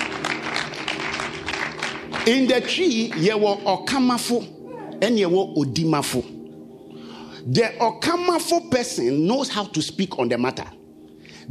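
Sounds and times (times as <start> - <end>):
audience clapping hands: 0.0 - 3.4
speech: 2.3 - 6.4, 7.4 - 10.8.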